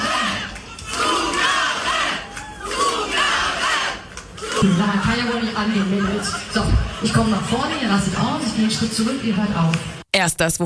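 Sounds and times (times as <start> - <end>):
German concert crowd chanting for an encore: 0.0 - 5.8
laughter: 4.6 - 8.6
speech: 4.6 - 10.6.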